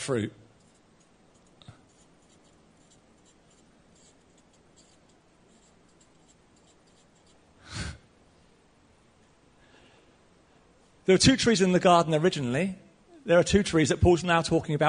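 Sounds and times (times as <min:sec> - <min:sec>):
speech: 0:00.0 - 0:00.4, 0:11.1 - 0:14.8
pen or marker drawing a tree on paper: 0:00.6 - 0:07.4.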